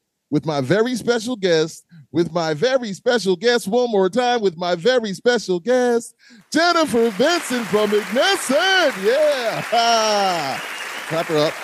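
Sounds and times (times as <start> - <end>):
speech: 0.3 - 11.6
people cheering: 6.6 - 11.6
audience applause: 6.7 - 11.6.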